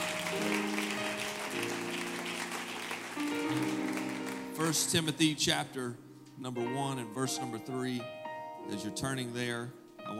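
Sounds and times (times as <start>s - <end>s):
audience applause: 0.0s - 4.6s
speech: 4.7s - 10.1s.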